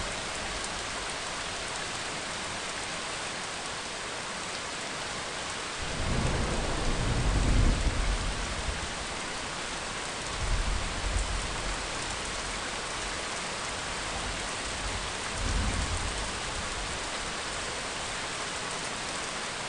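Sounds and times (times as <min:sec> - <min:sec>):
rain: 0:00.0 - 0:19.6
thunder: 0:05.8 - 0:08.8.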